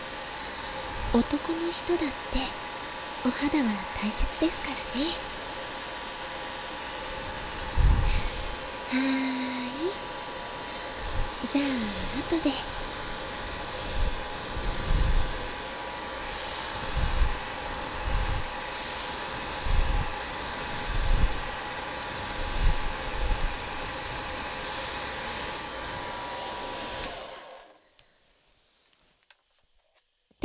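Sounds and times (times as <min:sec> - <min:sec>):
hair dryer drying hair in a salon: 0:00.0 - 0:28.8
speech: 0:01.1 - 0:02.6, 0:03.2 - 0:05.3, 0:08.9 - 0:09.4, 0:11.5 - 0:12.8.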